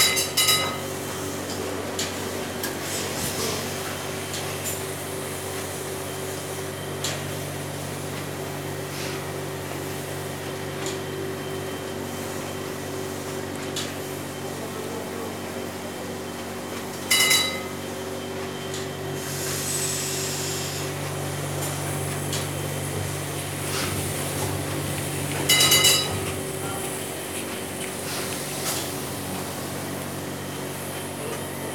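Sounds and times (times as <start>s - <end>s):
ship engine telegraph bell: 0.0s - 1.0s, 17.0s - 18.0s, 25.5s - 26.3s
ship engines slowing and stopping: 0.7s - 31.7s.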